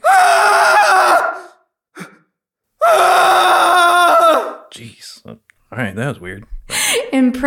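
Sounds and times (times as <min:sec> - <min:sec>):
man screaming: 0:00.0 - 0:01.6, 0:02.8 - 0:04.7
speech: 0:05.9 - 0:07.4.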